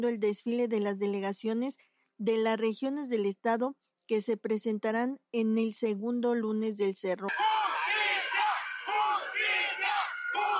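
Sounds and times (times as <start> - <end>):
speech: 0.0 - 7.6
protesters shouting a slogan: 7.3 - 10.5.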